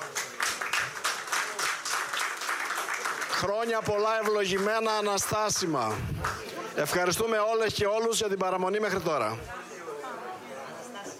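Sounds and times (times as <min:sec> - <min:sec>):
applause: 0:00.0 - 0:07.2
speech: 0:03.4 - 0:09.7.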